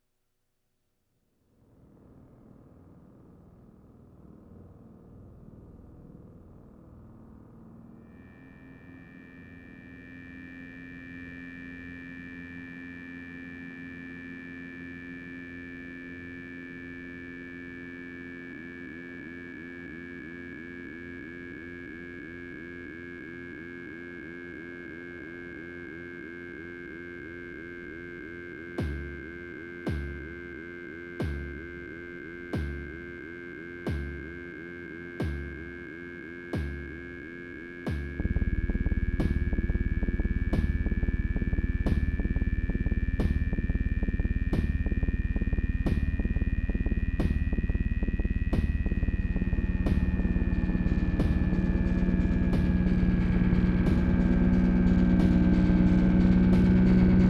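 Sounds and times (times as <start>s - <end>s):
noise: 6.6s - 57.2s.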